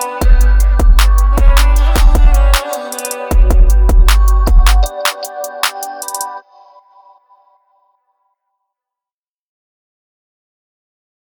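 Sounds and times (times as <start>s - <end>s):
bass-boosted audio: 0.0s - 2.7s, 3.3s - 5.0s.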